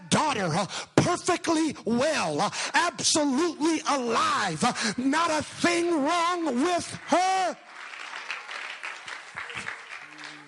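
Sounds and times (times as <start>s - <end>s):
speech: 0.3s - 7.7s
audience clapping: 6.1s - 10.4s
audience responding: 7.0s - 10.4s.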